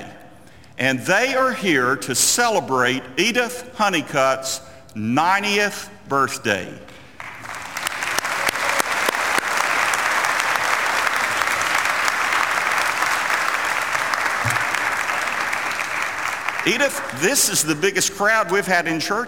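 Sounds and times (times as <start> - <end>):
speech: 0.8 - 6.9, 16.7 - 19.2
church audience applauding: 7.2 - 18.6.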